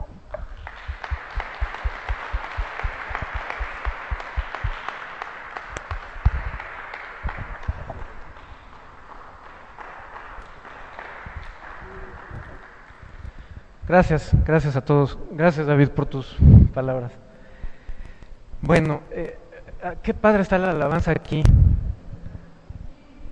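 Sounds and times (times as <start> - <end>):
audience applause: 0.4 - 13.4
speech: 13.9 - 17.2, 18.7 - 21.6.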